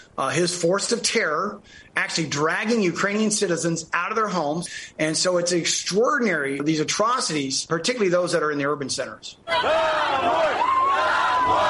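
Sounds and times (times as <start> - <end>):
speech: 0.2 - 11.6
crowd chanting and shouting in city square: 9.5 - 11.6.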